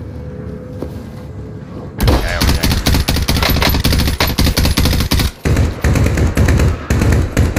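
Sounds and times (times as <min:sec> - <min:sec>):
automatic gunfire bursts in a video game: 0:02.0 - 0:07.5.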